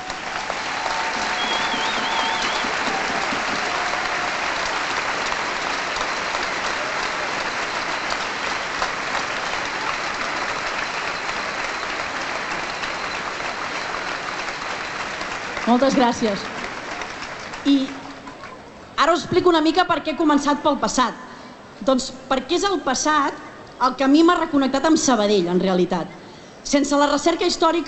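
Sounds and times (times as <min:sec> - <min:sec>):
audience applause: 0:00.0 - 0:19.0
speech: 0:15.7 - 0:16.5, 0:17.6 - 0:18.0, 0:19.0 - 0:21.2, 0:21.8 - 0:27.8.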